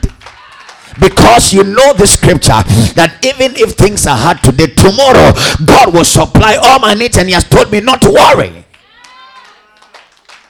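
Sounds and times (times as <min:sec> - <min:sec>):
weak audience clapping: 0:00.0 - 0:01.2, 0:08.6 - 0:10.4
speech: 0:01.0 - 0:08.7.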